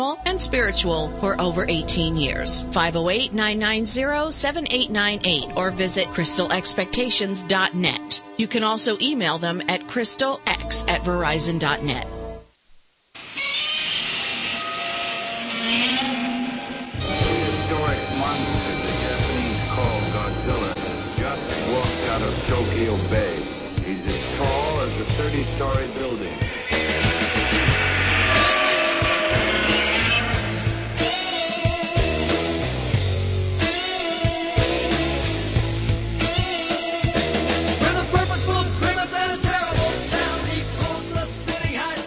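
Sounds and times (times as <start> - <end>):
speech: 0.0 - 12.2
rock band music: 14.4 - 42.0.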